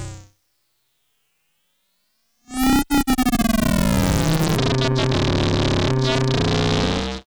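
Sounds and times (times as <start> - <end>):
twisted analog special effect: 2.5 - 7.2.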